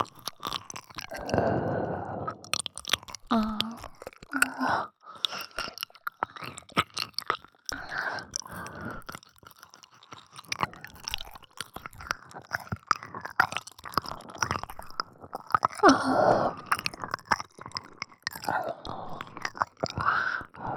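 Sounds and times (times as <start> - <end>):
oral sex sounds: 0.0 - 9.2, 14.0 - 20.7
ear licking sounds: 0.0 - 20.7.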